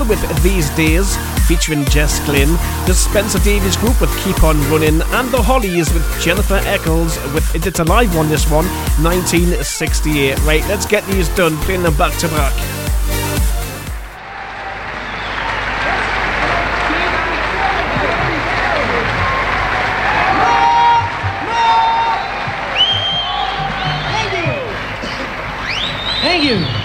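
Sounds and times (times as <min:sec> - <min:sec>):
audience clapping: 0:00.0 - 0:12.6, 0:13.4 - 0:26.8
crowd voices: 0:00.0 - 0:12.6, 0:14.2 - 0:26.6
speech: 0:00.1 - 0:12.8
whistles: 0:15.0 - 0:15.9, 0:22.0 - 0:26.8.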